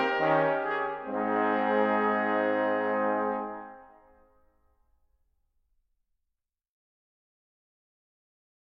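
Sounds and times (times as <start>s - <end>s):
march music: 0.0s - 4.2s.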